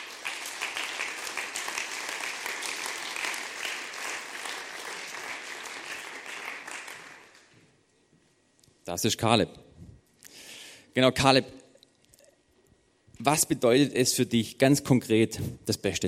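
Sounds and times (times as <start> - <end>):
audience applause: 0.0 - 7.5
speech: 8.9 - 9.6, 11.0 - 11.6, 13.2 - 16.0.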